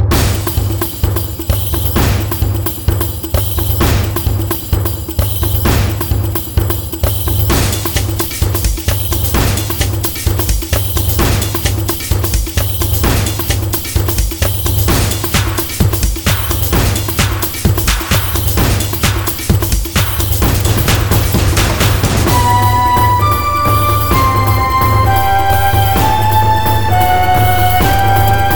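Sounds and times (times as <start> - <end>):
matsuri dance music: 0.1 - 28.5.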